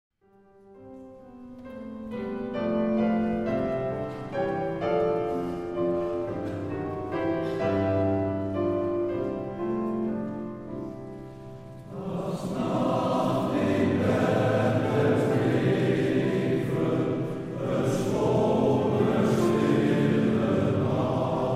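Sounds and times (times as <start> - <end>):
traditional Christmas carol: 0.2 - 21.5.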